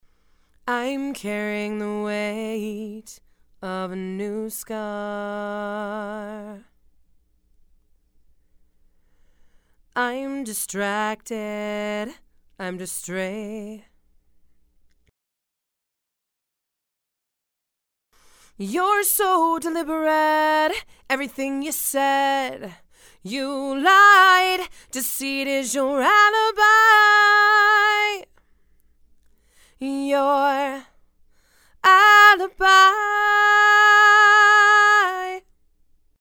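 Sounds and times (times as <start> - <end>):
female vocals: 0.7 - 6.8, 10.0 - 13.9, 18.6 - 28.3, 29.8 - 31.0, 31.7 - 35.5.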